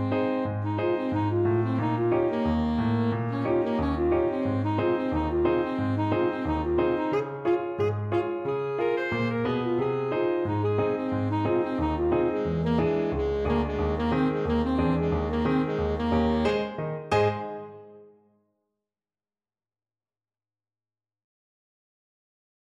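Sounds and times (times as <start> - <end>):
saxophone playing: 0.0 - 18.0.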